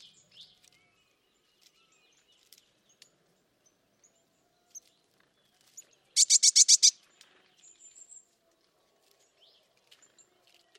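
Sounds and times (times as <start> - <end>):
bird buzzy pulsed call: 6.2 - 6.9.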